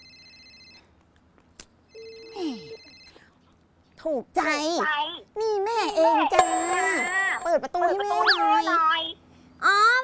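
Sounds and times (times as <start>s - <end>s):
telephone ringing: 0.0s - 0.9s, 1.9s - 3.1s
speech: 4.0s - 9.9s.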